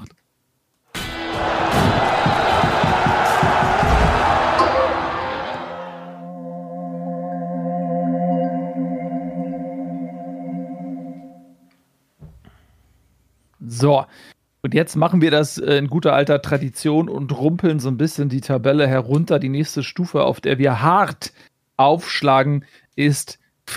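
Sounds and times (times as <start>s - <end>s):
crowd applause and cheering: 1.0s - 6.2s
sustained tonal chord: 4.6s - 11.6s
speech: 13.8s - 23.7s.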